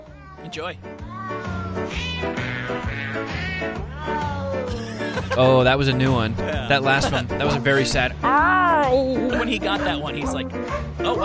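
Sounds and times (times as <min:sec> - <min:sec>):
sampled cat meows in novelty song: 0:00.0 - 0:04.7
speech: 0:00.4 - 0:11.2
steady bouncy backing track: 0:01.0 - 0:11.2
laughter: 0:04.7 - 0:08.0.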